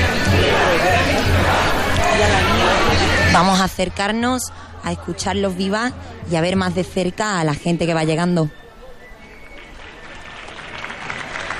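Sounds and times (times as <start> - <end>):
crowd applause: 0.0 - 3.3, 8.8 - 11.5
speech: 3.4 - 8.6.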